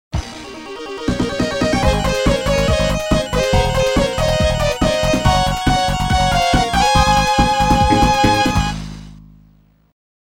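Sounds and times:
fanfare: 1.0 - 8.9.

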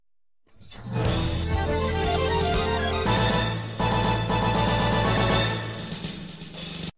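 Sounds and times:
arcade win sound: 1.5 - 5.8.

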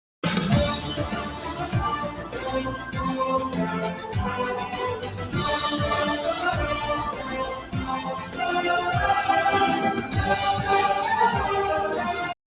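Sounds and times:
orchestral theme: 0.2 - 12.4.

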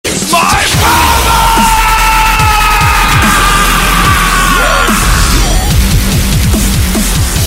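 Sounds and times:
dubstep remix: 0.1 - 7.4.

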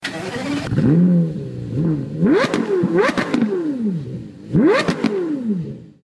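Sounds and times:
Porsche Carrera: 0.0 - 6.0.

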